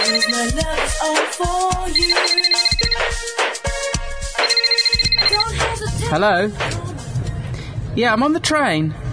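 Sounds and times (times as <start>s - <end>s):
mobile phone ringtone: 0.0s - 0.8s, 1.9s - 5.7s
speech: 0.1s - 3.6s, 6.1s - 7.0s, 8.0s - 9.0s.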